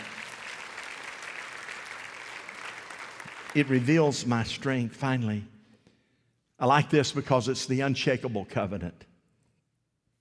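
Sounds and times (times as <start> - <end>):
audience applause: 0.0 - 4.2
speech: 3.6 - 5.5, 6.6 - 9.1.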